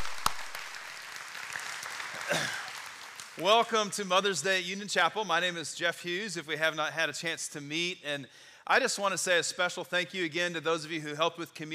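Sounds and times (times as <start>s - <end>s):
audience applauding: 0.0s - 3.7s
speech: 2.3s - 2.6s, 3.4s - 11.7s.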